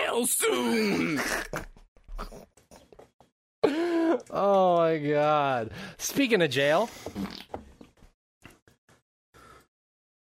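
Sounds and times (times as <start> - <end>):
speech: 0.2 - 1.7, 4.3 - 7.5
fart: 7.1 - 7.6.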